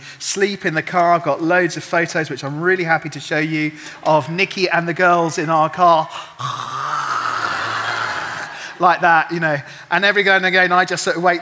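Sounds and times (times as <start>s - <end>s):
speech: 0.2s - 7.1s, 8.8s - 11.4s
person imitating snoring of sleeping passengers: 6.1s - 8.5s.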